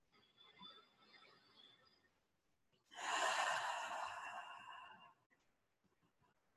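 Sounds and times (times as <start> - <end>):
deep breath in through the nose and out the mouth during a grounding exercise: 2.9 - 5.3.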